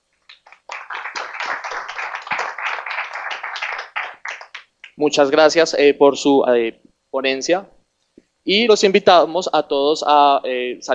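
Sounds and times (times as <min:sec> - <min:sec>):
audience applause for speakers: 0:00.3 - 0:05.0
speech: 0:05.0 - 0:07.8, 0:08.4 - 0:10.9.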